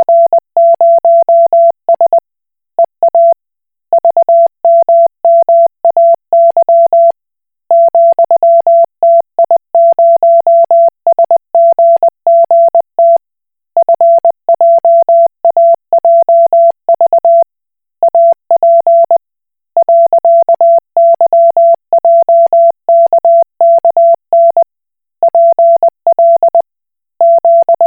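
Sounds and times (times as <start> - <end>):
Koch Morse code beeps: 0.0 - 2.2, 4.0 - 7.1, 7.7 - 13.2, 13.8 - 17.4, 18.1 - 19.2, 19.8 - 24.6, 25.3 - 26.6, 27.2 - 27.8.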